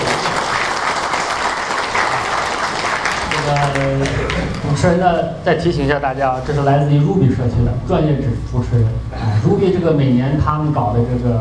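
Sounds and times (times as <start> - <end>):
audience applause: 0.0 - 4.8
speech: 3.5 - 11.4.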